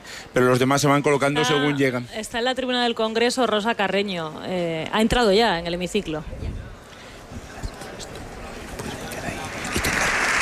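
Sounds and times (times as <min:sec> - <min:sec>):
speech: 0:00.3 - 0:06.6
applause in parliament chamber: 0:09.6 - 0:10.3.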